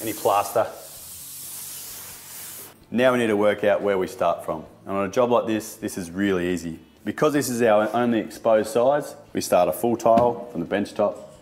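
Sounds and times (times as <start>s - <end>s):
speech: 0.0s - 0.8s, 2.9s - 11.3s
spraying water to wipe down wall: 0.0s - 2.8s.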